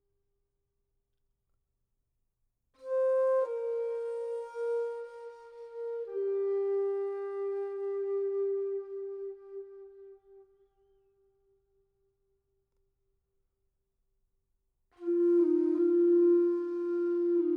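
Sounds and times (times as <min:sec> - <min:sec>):
meditative music: 0:02.8 - 0:11.2, 0:15.0 - 0:17.5.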